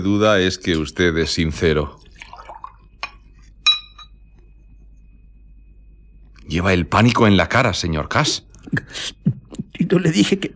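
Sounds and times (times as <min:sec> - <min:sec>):
speech: 0:00.0 - 0:02.0, 0:06.5 - 0:10.5
drink poured into a glass: 0:02.0 - 0:03.2
glass clinks: 0:03.6 - 0:04.2.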